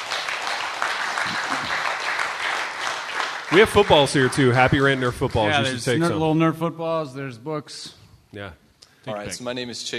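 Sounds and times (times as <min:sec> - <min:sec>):
crowd applauding: 0:00.0 - 0:06.0
speech: 0:03.5 - 0:09.9.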